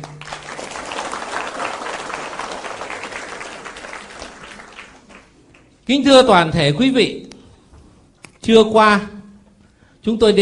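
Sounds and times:
audience applause: 0.0 - 5.8
speech: 5.9 - 7.2, 8.5 - 9.2, 10.0 - 10.4.

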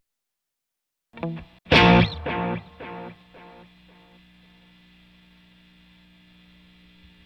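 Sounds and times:
distorted note through tape echo delay effect, head three setting: 1.2 - 3.7.

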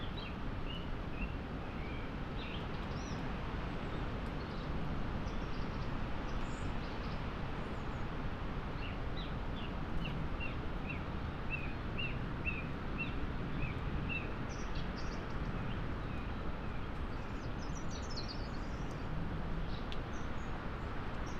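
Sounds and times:
mid-winter gales roaring over moorland forest: 0.0 - 21.3.

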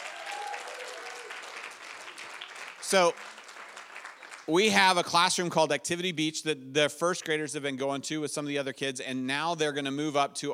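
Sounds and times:
audience applause: 0.0 - 4.7
speech: 2.9 - 3.4, 4.5 - 10.5.

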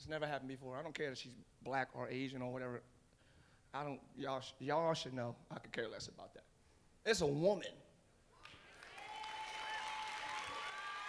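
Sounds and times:
speech: 0.0 - 3.0, 3.7 - 7.8
audience clapping: 8.4 - 11.0.

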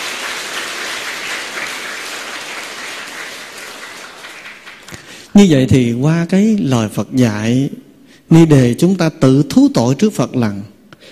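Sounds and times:
audience applause: 0.0 - 5.3
speech: 5.4 - 11.1.

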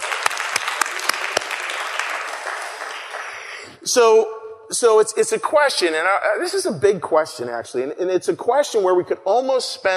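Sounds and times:
crowd applause: 0.0 - 3.6
speech: 3.9 - 9.9.

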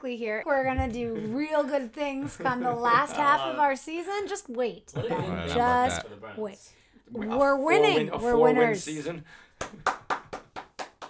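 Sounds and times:
speech: 0.0 - 9.9
laughter: 2.1 - 3.4, 5.0 - 6.0
golf claps: 9.6 - 11.0.

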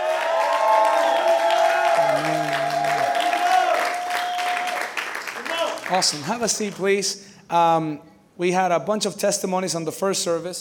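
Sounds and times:
church congregation clapping in praise: 0.0 - 6.9
speech: 5.9 - 10.6.

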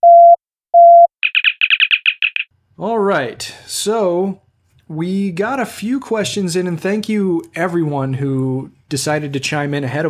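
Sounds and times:
sci-fi communicator opening chirp: 1.2 - 2.5
speech: 2.8 - 10.0.

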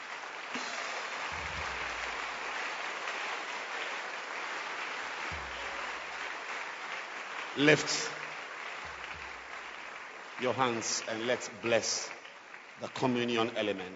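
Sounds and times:
audience hand clapping: 0.0 - 13.9
low thumps: 1.3 - 2.4, 5.3 - 6.2, 8.9 - 9.5
speech: 7.6 - 8.2, 10.4 - 12.2, 12.8 - 13.9.

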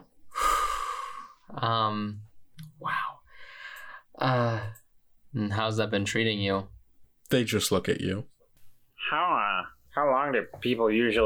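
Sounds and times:
voice imitating a long laborious breathy inhale: 0.3 - 1.5
speech: 1.6 - 3.1, 4.2 - 6.7, 7.3 - 8.3, 9.0 - 9.4, 10.3 - 11.2.

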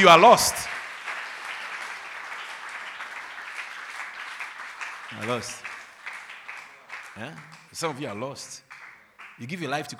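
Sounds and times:
speech: 0.0 - 0.8, 5.2 - 5.7, 7.2 - 8.6, 9.4 - 9.9
audience clapping: 0.0 - 9.9.

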